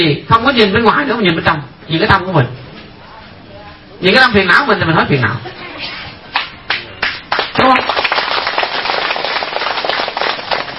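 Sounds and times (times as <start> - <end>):
speech: 0.0 - 2.6, 4.0 - 6.0
audience applause at a Buddhist dharma talk: 6.7 - 10.7.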